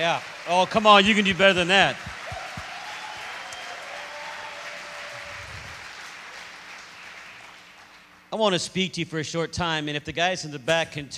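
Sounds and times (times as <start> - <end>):
speech: 0.0 - 2.1, 8.3 - 11.1
audience clapping hands: 0.0 - 8.3.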